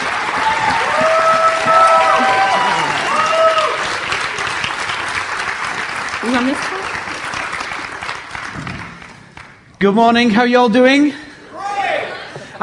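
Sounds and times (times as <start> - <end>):
cheering voices: 0.0 - 4.1
audience applauding as guest pastors are welcomed to the platform: 0.0 - 9.7
speech: 9.8 - 11.2.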